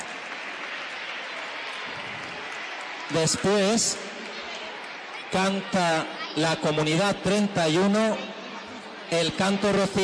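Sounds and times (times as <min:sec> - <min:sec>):
audience applause: 0:00.0 - 0:05.7
speech: 0:03.1 - 0:04.1, 0:05.3 - 0:08.3, 0:09.1 - 0:10.0.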